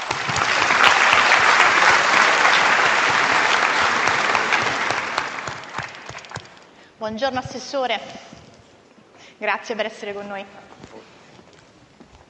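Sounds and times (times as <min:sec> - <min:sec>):
audience applause: 0:00.0 - 0:06.7
speech: 0:07.0 - 0:08.3, 0:09.4 - 0:11.0.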